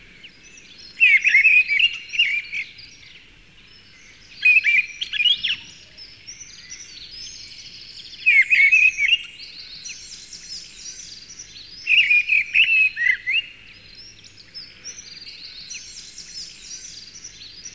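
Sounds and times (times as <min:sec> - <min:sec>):
birds: 0:00.0 - 0:17.7.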